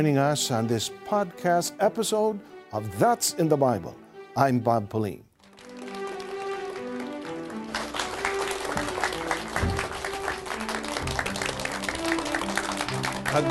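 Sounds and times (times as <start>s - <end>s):
speech: 0.0s - 5.3s
studio audience applause greeting a Bible question show: 5.4s - 13.4s.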